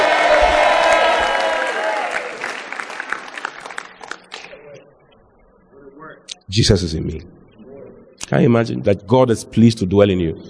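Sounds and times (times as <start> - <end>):
audience shouting: 0.0 - 2.4
audience clapping: 0.0 - 4.8
speech: 6.5 - 7.4, 8.3 - 10.4.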